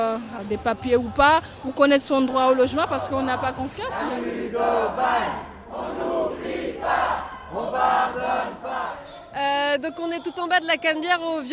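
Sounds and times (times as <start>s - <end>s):
speech: 0.0s - 11.5s
protest crowd chanting: 1.1s - 9.4s.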